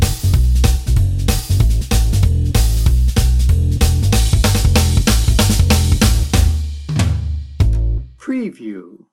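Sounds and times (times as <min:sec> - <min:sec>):
gypsy fiddle playing jazz: 0:00.0 - 0:06.6
drum and bass beat: 0:00.0 - 0:08.1.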